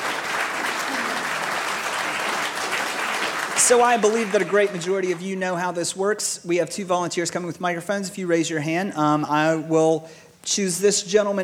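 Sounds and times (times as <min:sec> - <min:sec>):
audience applause: 0:00.0 - 0:05.2
speech: 0:03.6 - 0:11.4.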